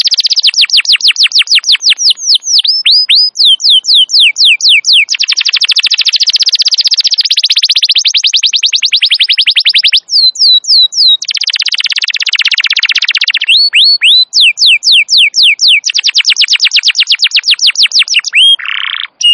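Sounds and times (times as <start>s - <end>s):
canary singing: 0.0s - 19.3s.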